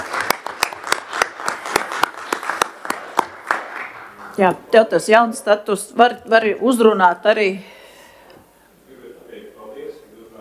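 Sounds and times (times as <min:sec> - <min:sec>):
council members applauding: 0:00.0 - 0:04.7
speech: 0:04.4 - 0:07.7.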